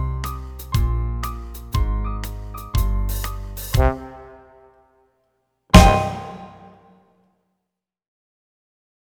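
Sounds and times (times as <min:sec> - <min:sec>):
slow boogie music: 0:00.8 - 0:04.7, 0:05.7 - 0:06.8.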